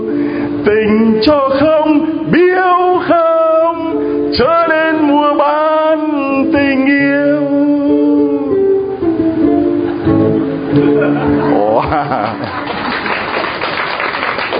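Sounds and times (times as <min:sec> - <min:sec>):
song performed with guitar accompaniment: 0:00.0 - 0:12.5
speech: 0:00.6 - 0:03.2, 0:04.4 - 0:04.8
laughter: 0:09.8 - 0:14.5
audience applause after a song with guitar: 0:11.8 - 0:14.5.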